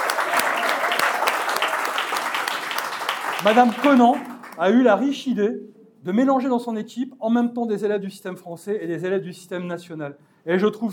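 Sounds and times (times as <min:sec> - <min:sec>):
audience applauding: 0:00.0 - 0:04.7
speech: 0:03.4 - 0:10.9.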